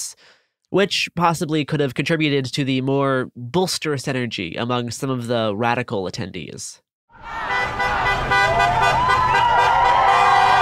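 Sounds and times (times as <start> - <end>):
speech: 0.0 - 7.6
car horns blaring: 7.2 - 10.6
traffic noise rumbling: 7.2 - 10.6.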